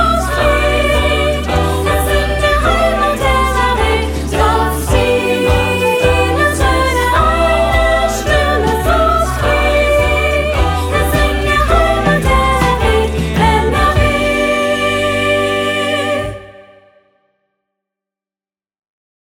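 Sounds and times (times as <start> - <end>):
mixed choir singing: 0.0 - 17.1.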